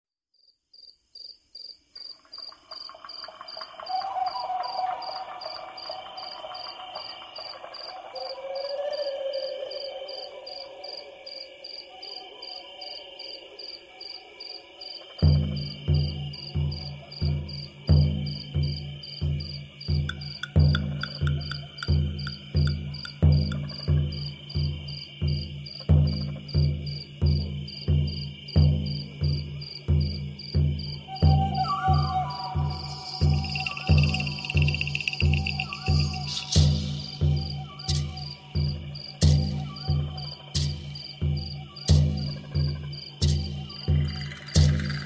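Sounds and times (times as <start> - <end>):
forest spirit drumming: 2.5 - 8.4, 15.2 - 45.0.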